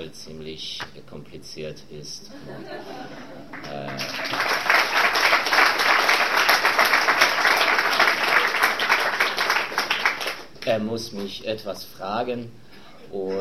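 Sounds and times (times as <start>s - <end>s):
speech: 0.0s - 4.7s, 10.6s - 13.3s
laughter: 2.3s - 4.6s
audience applause welcoming a guest: 3.5s - 10.5s.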